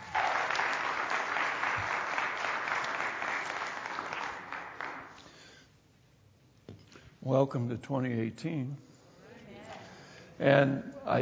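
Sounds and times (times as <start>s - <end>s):
church congregation applauding to welcome the pastor: 0.0s - 5.5s
speech: 7.2s - 8.9s, 10.4s - 11.2s.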